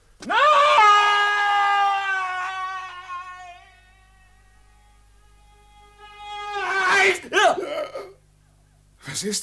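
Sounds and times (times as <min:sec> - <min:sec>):
man screaming: 0:00.2 - 0:05.1, 0:05.8 - 0:08.2.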